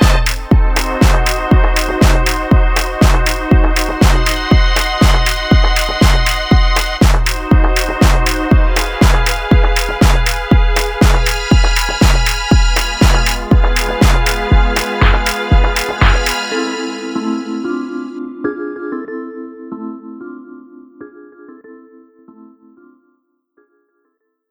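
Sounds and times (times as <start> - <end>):
signature musical chords: 0.0 - 18.3.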